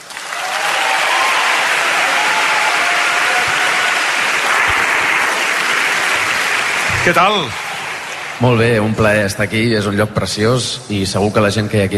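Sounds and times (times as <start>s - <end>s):
audience applause: 0.0s - 9.1s
speech: 7.0s - 7.6s, 8.4s - 11.9s.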